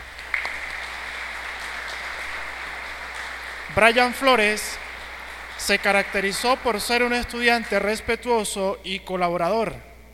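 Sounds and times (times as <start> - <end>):
crowd applauding: 0.0 - 8.1
speech: 3.7 - 4.8, 5.6 - 9.9.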